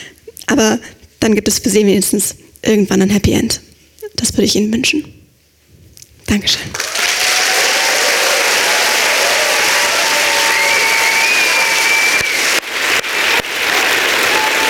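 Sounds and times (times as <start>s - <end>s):
speech: 0.0s - 5.2s, 6.3s - 7.0s
audience applause: 6.7s - 14.6s.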